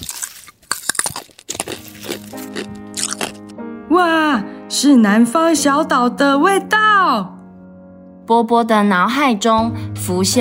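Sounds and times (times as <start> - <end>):
crunchy bites of shaved ice: 0.0 - 3.4
speech: 4.0 - 7.4, 8.3 - 10.3.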